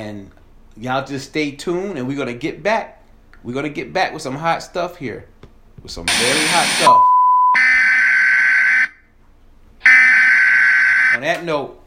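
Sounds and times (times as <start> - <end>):
speech: 0.0 - 7.1, 11.2 - 11.8
emergency broadcast alert tone: 6.1 - 9.0, 9.8 - 11.3.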